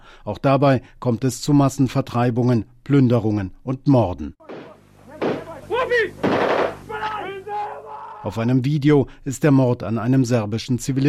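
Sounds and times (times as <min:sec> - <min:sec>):
speech: 0:00.2 - 0:04.5, 0:08.2 - 0:11.0
gunfire bursts: 0:04.4 - 0:07.2
agitated voices shouting: 0:04.4 - 0:08.3.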